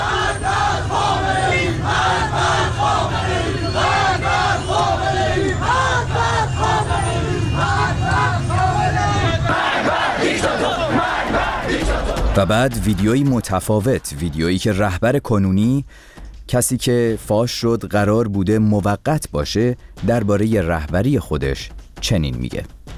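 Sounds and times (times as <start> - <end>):
crowd chanting death to Khamenei in Iranian streets: 0.0 - 13.5
speech: 12.4 - 22.8.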